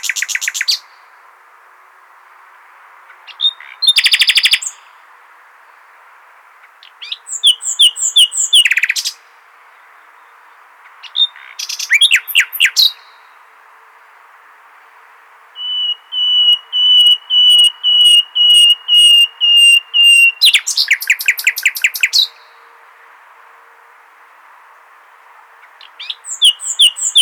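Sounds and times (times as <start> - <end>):
common nightingale song: 0.0 - 1.2, 3.1 - 5.0, 6.6 - 13.5, 15.6 - 24.4, 25.0 - 27.2.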